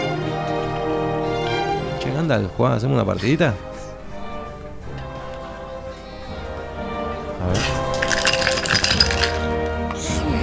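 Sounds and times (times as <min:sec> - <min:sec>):
steady tonal background: 0:00.0 - 0:10.4
speech: 0:02.1 - 0:03.7
dice thrown and clattering: 0:07.5 - 0:09.9.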